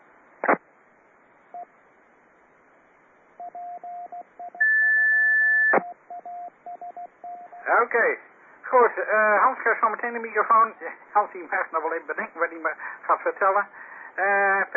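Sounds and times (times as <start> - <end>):
faint radio hiss: 0.4 - 0.7, 7.7 - 14.7
short quieter beeps: 3.4 - 7.6
1750 hertz radio tone: 4.6 - 5.9
speech: 7.7 - 14.7.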